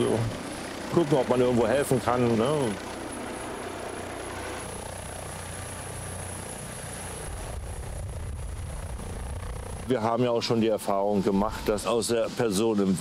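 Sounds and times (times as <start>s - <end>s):
speech: 0.0s - 2.9s, 9.9s - 12.9s
rescue helicopter rotor drone: 0.0s - 12.9s.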